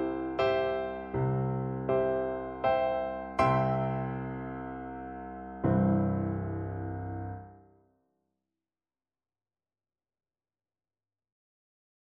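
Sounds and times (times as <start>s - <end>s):
piano piece: 0.0s - 7.8s.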